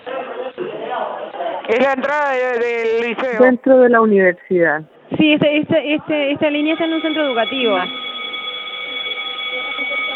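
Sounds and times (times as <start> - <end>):
speech: 0.1 - 8.0
bell ringing: 6.5 - 10.1.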